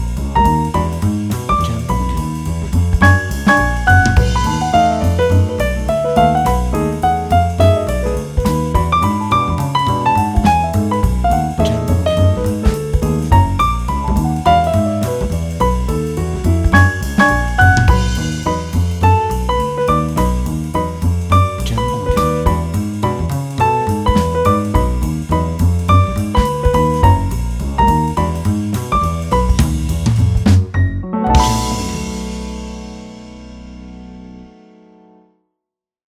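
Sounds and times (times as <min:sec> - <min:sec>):
swing jazz piano: 0:00.0 - 0:34.9.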